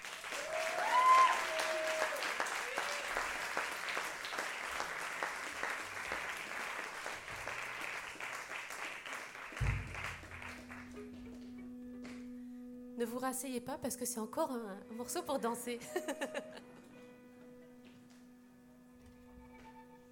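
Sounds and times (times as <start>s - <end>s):
concert audience applause: 0.0s - 11.4s
speech: 13.0s - 16.6s
laughter: 15.8s - 16.8s.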